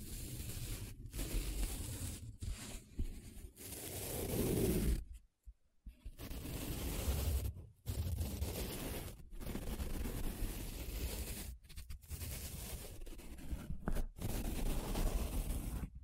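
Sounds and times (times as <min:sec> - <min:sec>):
paper rubbing and scratching: 0:00.0 - 0:05.1, 0:06.0 - 0:16.0.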